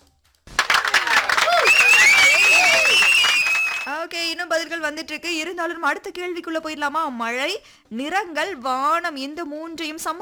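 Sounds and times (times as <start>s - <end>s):
applause: 0.5s - 4.0s
speech: 4.7s - 10.1s.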